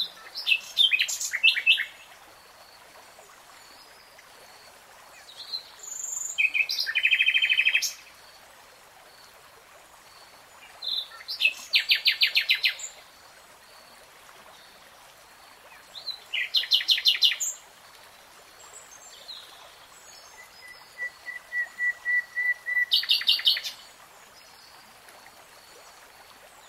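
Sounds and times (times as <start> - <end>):
nightingale song: 0.0 - 2.2, 5.2 - 8.2, 10.6 - 13.1, 15.6 - 17.6, 18.6 - 24.6
steady hiss: 0.0 - 26.6.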